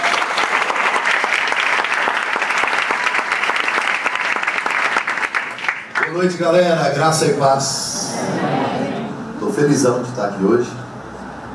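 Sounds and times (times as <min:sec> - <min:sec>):
church congregation applauding: 0:00.0 - 0:06.6
speech: 0:06.2 - 0:08.6, 0:09.6 - 0:10.8.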